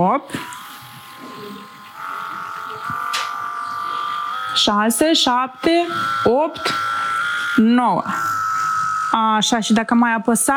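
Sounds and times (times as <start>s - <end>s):
speech: 0.0s - 0.6s, 4.6s - 6.9s, 7.6s - 8.4s, 9.2s - 10.5s
handheld electric massager vibrating: 0.0s - 10.5s.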